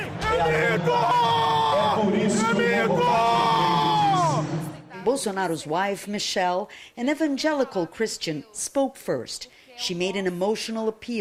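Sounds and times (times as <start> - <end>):
crowd cheering at political rally: 0.0 - 4.8
speech: 0.4 - 1.1, 5.1 - 11.2.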